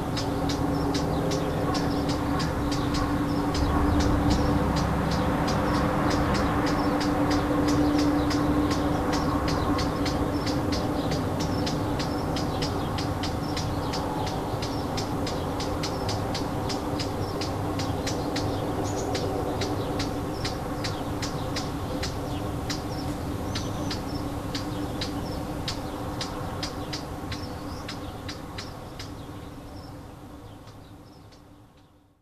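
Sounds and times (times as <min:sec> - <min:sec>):
warbler alarm call: 0:00.0 - 0:29.9.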